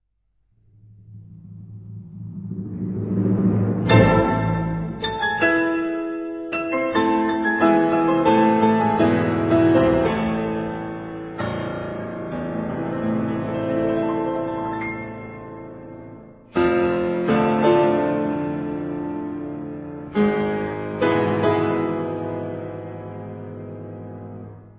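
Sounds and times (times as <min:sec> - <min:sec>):
piano concerto: 0:01.2 - 0:24.7.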